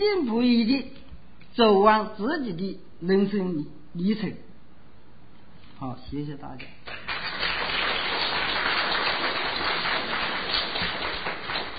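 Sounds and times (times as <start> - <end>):
speech: 0.0 - 1.0, 1.6 - 4.5, 5.8 - 6.9
audience clapping: 6.8 - 11.7.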